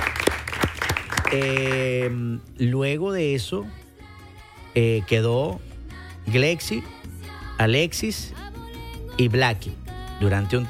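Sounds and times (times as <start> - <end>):
audience at a dance school applauding: 0.0 - 2.2
speech: 1.3 - 3.8, 4.8 - 5.7, 6.3 - 7.0, 7.6 - 8.4, 9.2 - 10.6.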